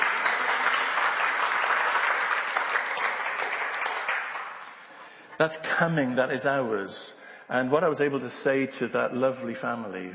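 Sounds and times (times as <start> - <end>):
audience applause: 0.0 - 4.9
speech: 5.4 - 10.1.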